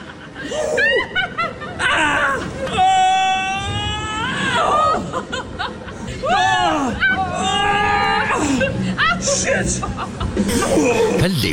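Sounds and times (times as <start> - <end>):
people laughing: 0.0 - 2.7, 4.6 - 11.5
excited screams from riders on a rollercoaster simulator: 0.8 - 5.5, 6.1 - 9.5.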